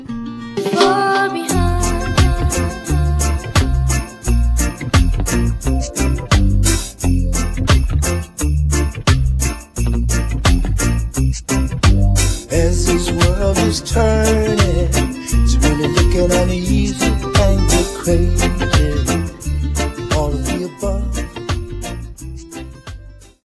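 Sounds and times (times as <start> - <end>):
reggae music: 0.5 - 23.4.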